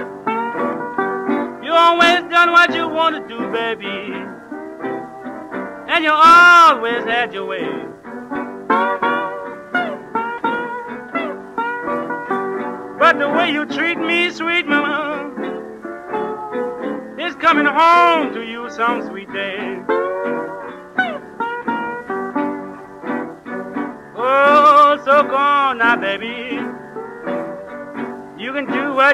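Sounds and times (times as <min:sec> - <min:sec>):
jazz and rhythm and blues slide guitar: 0:00.0 - 0:29.1.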